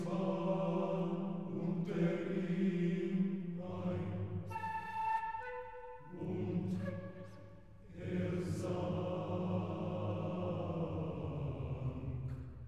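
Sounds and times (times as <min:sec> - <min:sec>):
male voice choir singing: 0:00.0 - 0:04.5, 0:06.1 - 0:07.0, 0:07.9 - 0:12.5.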